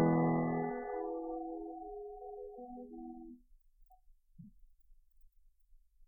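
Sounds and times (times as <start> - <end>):
carol singing: 0.1 - 3.3.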